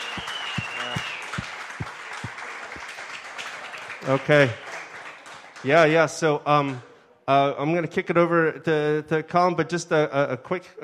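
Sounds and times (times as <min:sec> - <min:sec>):
audience applause: 0:00.0 - 0:06.0
speech: 0:04.0 - 0:04.6, 0:05.6 - 0:10.8.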